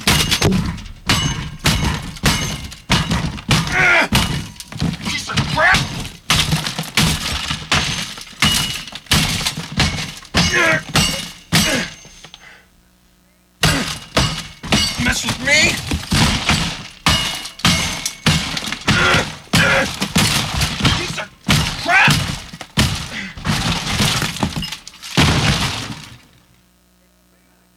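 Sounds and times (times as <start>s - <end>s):
hammer smashing a CD player: 0.0s - 12.5s, 13.6s - 26.4s
speech: 0.5s - 0.8s.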